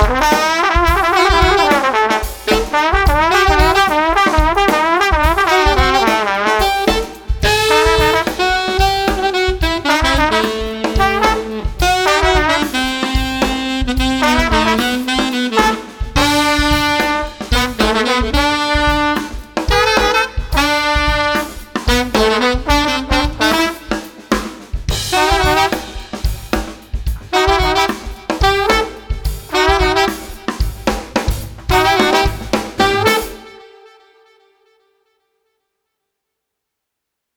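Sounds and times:
upbeat street saxophone and trombone combo music: 0.0s - 34.6s.

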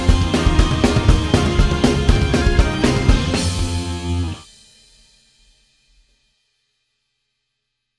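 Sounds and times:
instrumental pop punk music: 0.0s - 4.5s.

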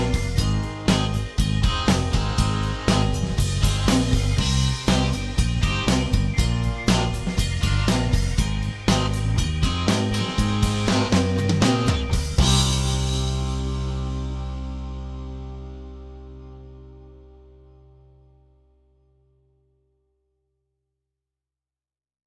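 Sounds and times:
underscore music: 0.0s - 16.2s.

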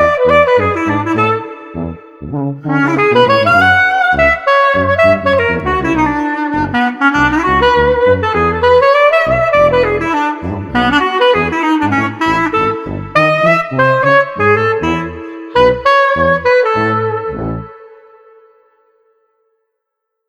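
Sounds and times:
upbeat street clarinet combo without drums: 0.0s - 18.4s.

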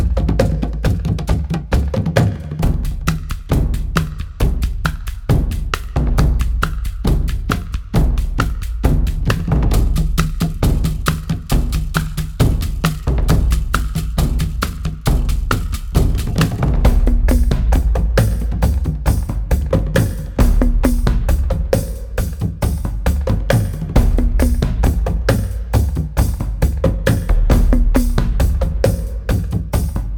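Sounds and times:
Hawaiian percussion: 0.0s - 30.1s.

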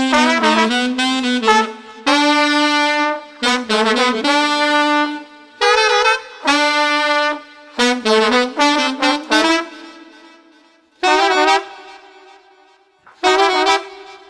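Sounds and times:
street sax and trombone combo playing upbeat music without drums: 0.0s - 14.2s.

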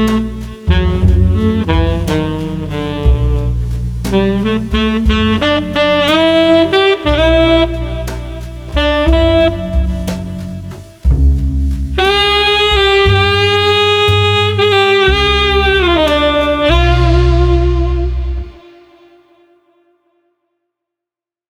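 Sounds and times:
bass: 0.0s - 18.6s
drums: 0.0s - 18.7s
saxophone: 0.0s - 19.9s.

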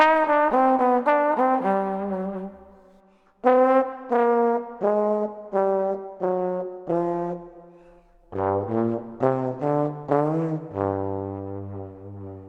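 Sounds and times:
woozy street trombone: 0.0s - 2.8s, 3.4s - 7.5s, 8.3s - 12.4s.

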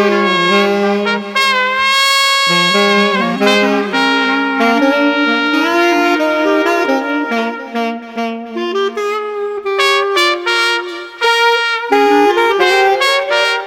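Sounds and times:
bluesy clarinet: 0.0s - 13.6s
bluesy saxophone: 0.0s - 13.6s
bluesy trumpet: 0.0s - 13.6s.

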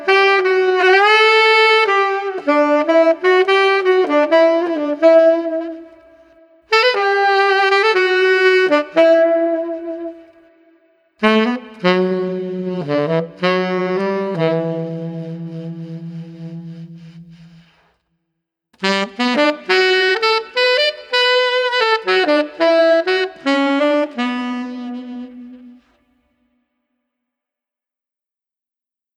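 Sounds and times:
pensive street tenor sax melody at 80 bpm: 0.0s - 17.9s, 18.8s - 26.2s.

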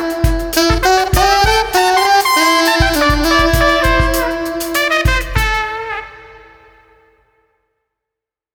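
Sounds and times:
smooth drums: 0.0s - 7.0s
street saxophone: 0.0s - 7.2s
trumpet: 0.0s - 7.4s.

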